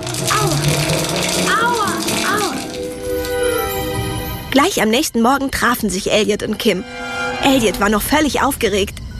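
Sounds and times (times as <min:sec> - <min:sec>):
hail falling in a running shower: 0:00.0 - 0:03.6
speech: 0:04.8 - 0:09.0.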